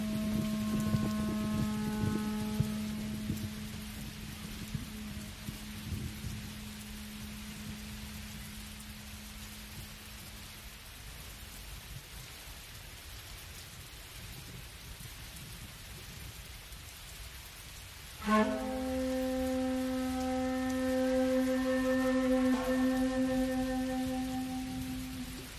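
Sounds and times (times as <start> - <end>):
flute: 0.0 - 10.2, 18.2 - 25.5
rain: 0.0 - 25.5.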